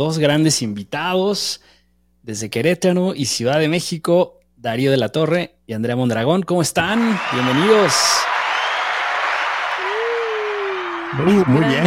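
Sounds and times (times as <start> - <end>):
speech: 0.0 - 8.3, 11.1 - 11.8
ovation for two podcast guests: 6.9 - 11.8.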